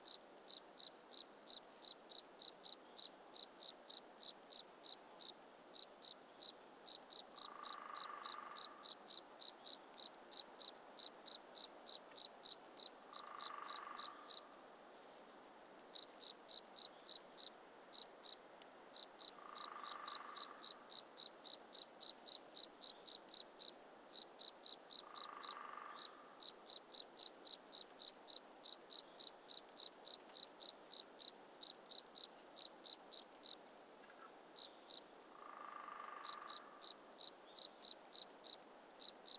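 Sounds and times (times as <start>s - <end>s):
crickets chirping: 0.0s - 14.6s, 15.9s - 39.3s.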